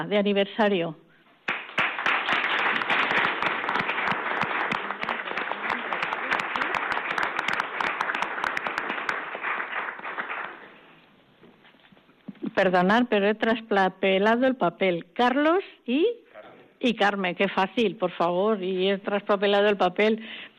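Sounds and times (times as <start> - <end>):
speech: 0.0 - 1.0, 12.6 - 16.2, 16.8 - 20.5
audience applause: 1.5 - 10.8.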